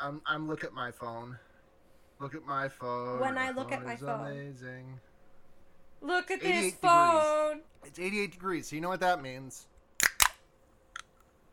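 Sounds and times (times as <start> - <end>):
speech: 0.0 - 1.5, 2.2 - 5.1, 6.0 - 9.7
sparkling water can cracking open: 10.0 - 10.4.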